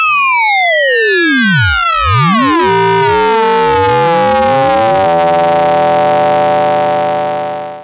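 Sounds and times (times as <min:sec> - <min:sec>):
internal oscillator square wave sweep through a ring modulator: 0:00.1 - 0:07.8.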